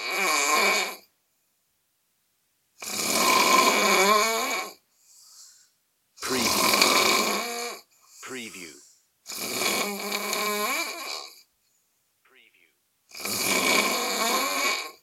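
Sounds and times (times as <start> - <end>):
heavy snoring: 0.0 - 1.1, 2.8 - 4.8, 6.2 - 7.9, 9.3 - 11.5, 13.1 - 15.0.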